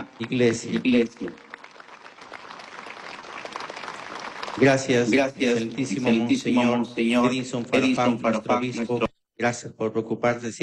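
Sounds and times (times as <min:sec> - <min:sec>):
applause: 0:00.0 - 0:06.4
speech: 0:00.2 - 0:01.5, 0:04.6 - 0:10.6.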